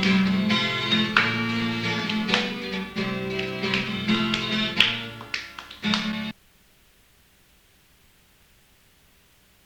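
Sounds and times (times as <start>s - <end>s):
song with clapping in F: 0.0s - 6.4s.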